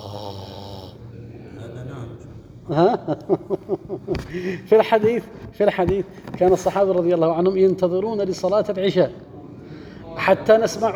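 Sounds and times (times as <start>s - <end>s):
man imitating snoring while preaching: 0.0s - 1.0s
laughter: 2.7s - 4.8s
speech: 2.7s - 9.2s, 10.2s - 10.9s.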